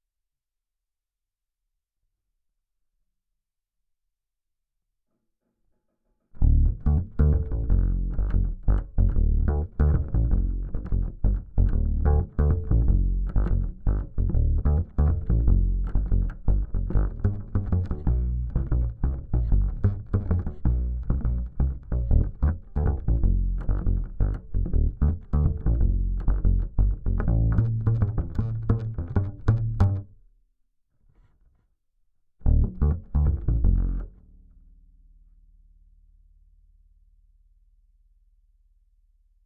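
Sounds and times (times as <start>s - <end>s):
bass guitar recorded by direct input: 6.4s - 30.2s, 32.4s - 35.8s.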